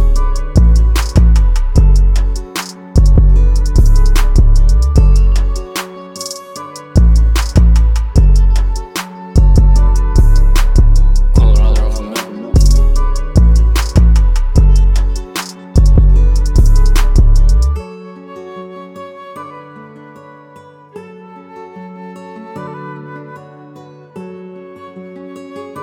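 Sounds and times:
sad ocean-themed music: 0:00.0 - 0:18.4.

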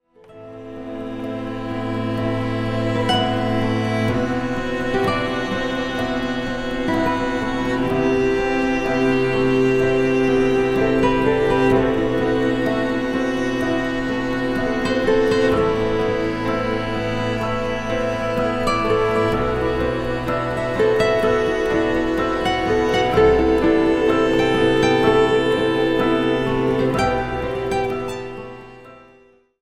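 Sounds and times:
cello: 0:00.0 - 0:29.5
piano: 0:00.0 - 0:29.6.

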